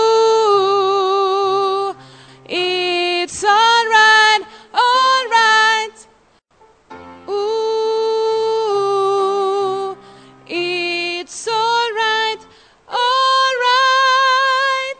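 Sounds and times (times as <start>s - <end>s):
soprano singing: 0.0s - 6.2s, 6.9s - 14.9s.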